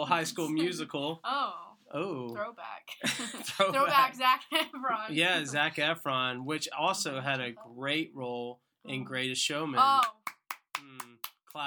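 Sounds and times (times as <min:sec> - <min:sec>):
speech: 0:00.0 - 0:10.3
hand claps: 0:09.9 - 0:11.6.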